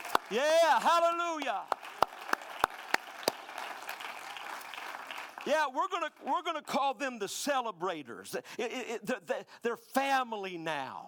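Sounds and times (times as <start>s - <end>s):
audience hand clapping in praise: 0.0s - 6.3s
speech: 0.3s - 1.8s, 5.4s - 11.0s.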